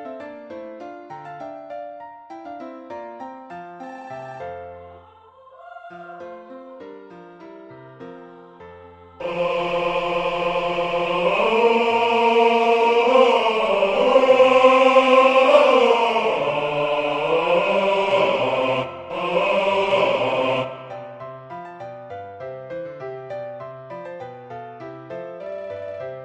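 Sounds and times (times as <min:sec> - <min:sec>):
bass voice singing a sacred choral piece: 0:09.2 - 0:20.7.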